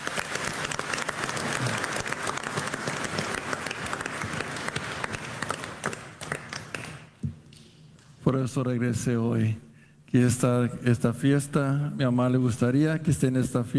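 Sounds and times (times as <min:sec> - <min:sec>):
audience applause: 0:00.0 - 0:07.1
speech: 0:08.3 - 0:13.7.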